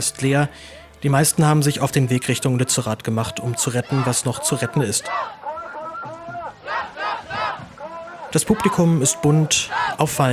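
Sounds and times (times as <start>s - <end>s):
speech: 0.0s - 5.5s, 8.3s - 10.3s
protest crowd chanting slogans on a march to Lützerath: 3.1s - 10.3s.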